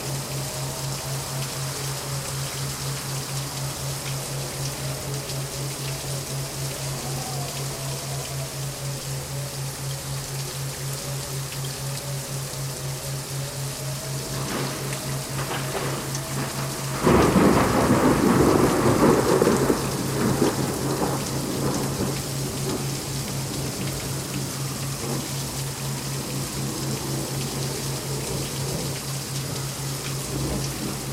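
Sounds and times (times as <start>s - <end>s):
thundering rainstorm: 0.0s - 31.1s
thunder in a rainstorm: 14.3s - 22.8s.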